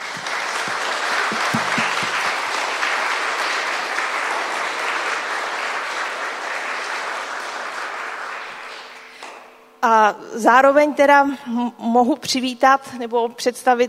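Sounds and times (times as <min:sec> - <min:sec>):
audience clapping: 0:00.0 - 0:09.1
speech: 0:09.8 - 0:13.8.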